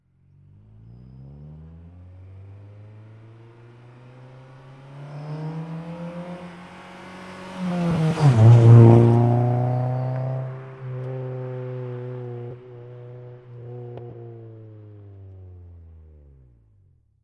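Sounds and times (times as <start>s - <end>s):
Acura Integra approaching slowly and accelerating by: 0.2s - 15.7s.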